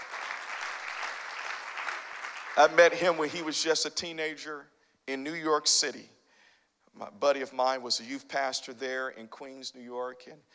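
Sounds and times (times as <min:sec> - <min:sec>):
audience hand clapping: 0:00.0 - 0:03.2
speech: 0:02.6 - 0:06.2, 0:07.0 - 0:10.5.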